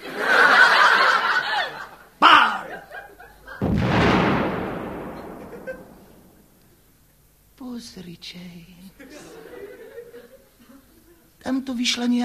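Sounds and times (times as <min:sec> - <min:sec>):
laughter: 0:00.0 - 0:03.6, 0:05.3 - 0:06.2, 0:09.0 - 0:11.3
cannon firing: 0:03.6 - 0:06.6
speech: 0:08.0 - 0:09.4, 0:11.4 - 0:12.2.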